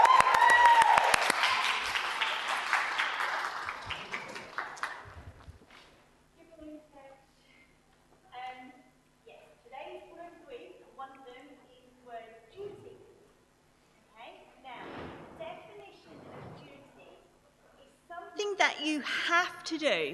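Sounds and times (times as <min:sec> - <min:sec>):
audience applause: 0:00.0 - 0:05.4
speech: 0:18.6 - 0:20.1.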